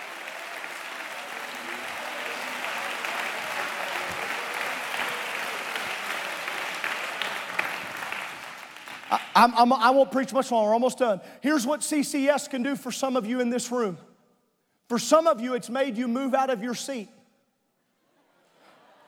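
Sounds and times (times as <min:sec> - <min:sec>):
audience clapping hands: 0:00.0 - 0:10.0
speech: 0:09.1 - 0:14.1, 0:14.9 - 0:17.2.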